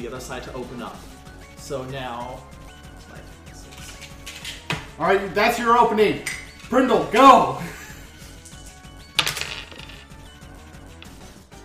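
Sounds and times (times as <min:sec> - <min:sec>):
speech: 0:00.0 - 0:03.3, 0:05.0 - 0:07.8
metallic clinking and gear mashing noise: 0:08.4 - 0:10.2.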